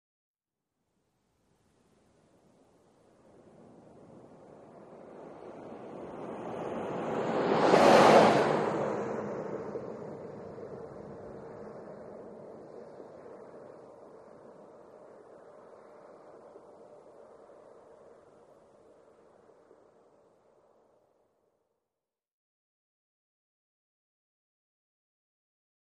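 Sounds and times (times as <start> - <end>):
SUV passing by right to left at 25 mph: 3.8 - 18.2.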